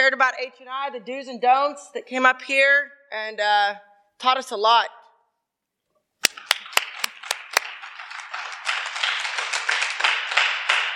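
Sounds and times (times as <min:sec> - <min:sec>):
speech: 0:00.0 - 0:05.0
audience applause: 0:06.2 - 0:10.9.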